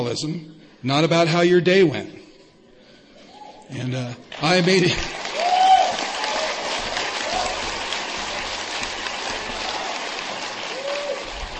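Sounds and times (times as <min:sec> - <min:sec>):
speech: 0:00.1 - 0:02.2, 0:03.7 - 0:05.3
audience clapping: 0:04.3 - 0:11.5.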